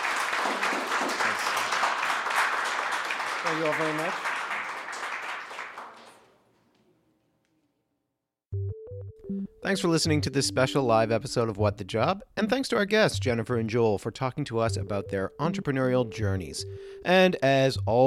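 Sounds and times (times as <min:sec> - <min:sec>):
audience applause: 0:00.0 - 0:06.3
speech: 0:03.5 - 0:04.3, 0:09.7 - 0:18.0.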